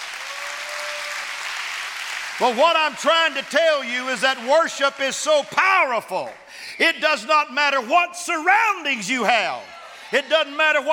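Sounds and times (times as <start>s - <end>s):
audience clapping: 0.0s - 6.5s
speech: 2.4s - 10.9s.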